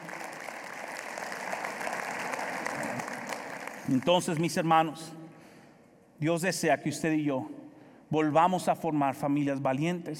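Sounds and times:
audience applause: 0.0s - 4.4s
speech: 3.9s - 5.2s, 6.2s - 10.1s.

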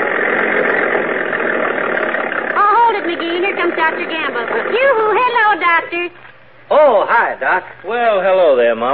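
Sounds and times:
small tractor engine idling: 0.0s - 5.9s
speech: 3.0s - 8.9s.

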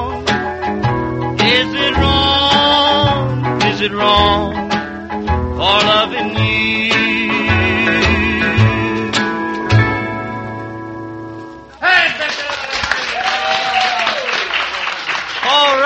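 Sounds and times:
song notes ringing out: 0.0s - 11.8s
crowd applauding: 12.0s - 15.8s.

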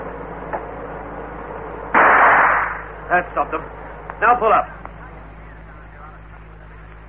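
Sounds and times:
truck engine rumble: 0.0s - 7.0s
elephant gun shot: 1.9s - 2.9s
speech: 3.1s - 4.9s.

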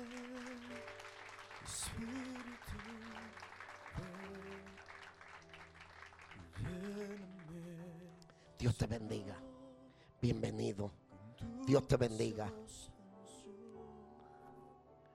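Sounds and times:
audience applauding: 0.0s - 7.7s
speech: 8.6s - 9.5s, 10.2s - 12.9s.

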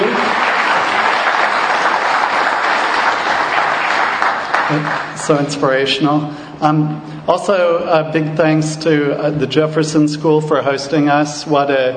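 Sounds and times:
audience clapping for speakers: 0.0s - 5.9s
speech: 4.7s - 11.9s.

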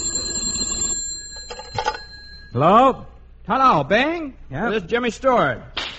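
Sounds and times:
telephone bell ringing: 0.0s - 2.6s
speech: 2.6s - 5.7s.

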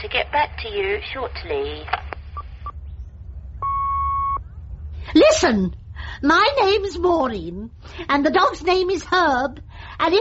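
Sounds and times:
speech: 0.0s - 2.0s, 5.0s - 10.1s
low hum: 0.0s - 10.1s
answering machine beep tone: 3.6s - 4.4s.

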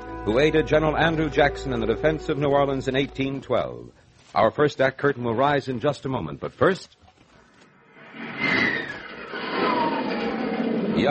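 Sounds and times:
speech: 0.2s - 7.0s
F-89 Scorpion jet aircraft engine: 8.0s - 11.0s.

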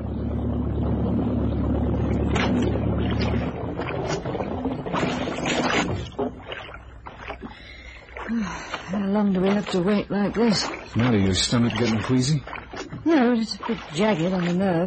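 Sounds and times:
boat engine droning: 0.0s - 14.8s
water sloshing and lapping against the hull: 0.0s - 14.8s
speech: 9.2s - 14.8s.

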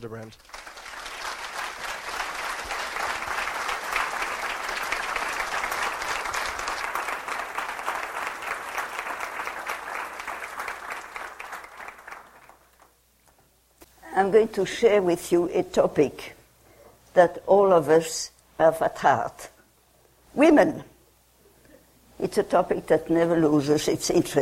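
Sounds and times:
speech: 0.0s - 0.6s, 14.2s - 16.4s, 17.2s - 19.5s, 20.4s - 20.9s, 22.3s - 24.4s
audience applause welcoming a speaker: 0.3s - 12.9s.

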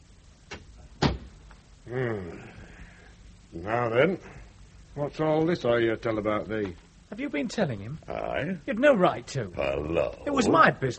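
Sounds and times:
door being shut: 0.5s - 1.4s
speech: 1.9s - 2.5s, 3.5s - 4.4s, 5.0s - 10.9s.

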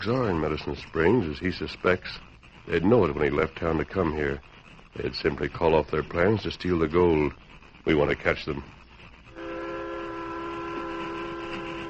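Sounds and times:
speech: 0.0s - 8.8s
train running on track: 0.0s - 11.8s
long sustained whistle-like tone: 9.3s - 11.8s.

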